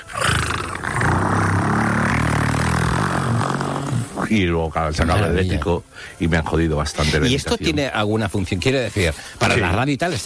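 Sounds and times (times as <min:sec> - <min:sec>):
voice imitating a diesel car engine: 0:00.0 - 0:04.2
speech: 0:04.3 - 0:10.2.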